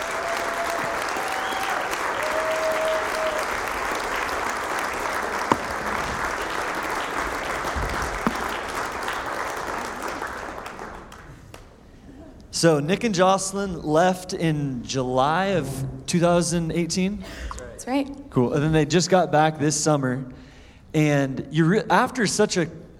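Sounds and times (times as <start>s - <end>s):
audience applause at Vineyard Northwest welcoming a couple: 0.0s - 11.5s
speech: 12.6s - 22.8s.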